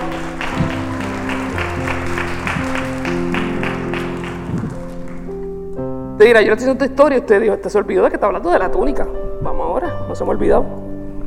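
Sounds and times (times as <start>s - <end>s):
crowd clapping: 0.0s - 5.5s
sustained musical tones: 0.0s - 5.8s
speech: 6.2s - 10.8s.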